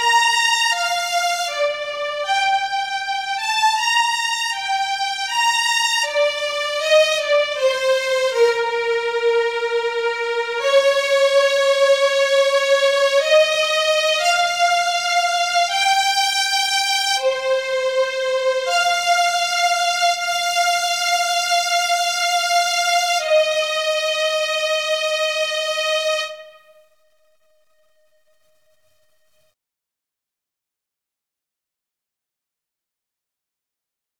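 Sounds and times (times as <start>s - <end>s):
violin: 0.0s - 27.1s.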